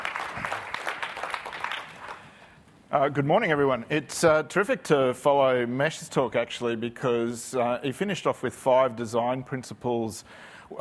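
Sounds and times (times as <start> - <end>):
audience applause welcoming a speaker to the stage: 0.0 - 2.4
speech: 2.9 - 10.8.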